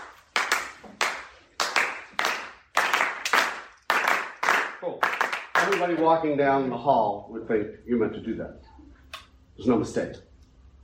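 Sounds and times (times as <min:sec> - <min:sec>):
hands clapping a rhythm: 0:00.0 - 0:06.0
speech: 0:04.9 - 0:08.6, 0:09.6 - 0:10.3.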